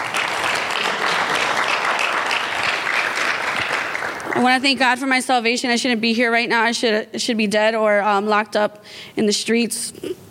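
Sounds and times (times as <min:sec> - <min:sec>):
crowd applause: 0:00.0 - 0:04.6
speech: 0:04.4 - 0:10.2.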